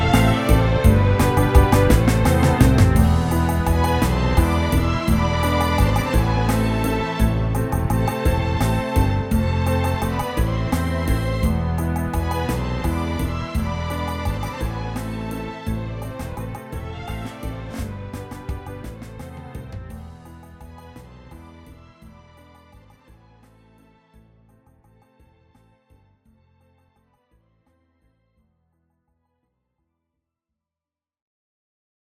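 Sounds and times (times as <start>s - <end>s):
orchestra playing: 0.0s - 21.6s
piano: 0.0s - 24.9s.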